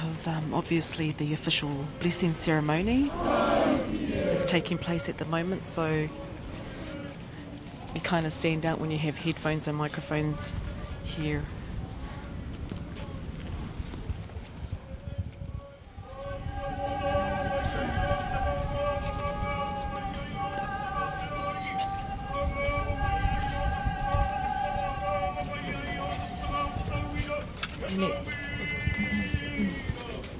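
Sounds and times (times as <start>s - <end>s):
speech: 0.2s - 6.3s, 8.0s - 11.6s
crowd filing through a meeting house: 1.6s - 30.3s.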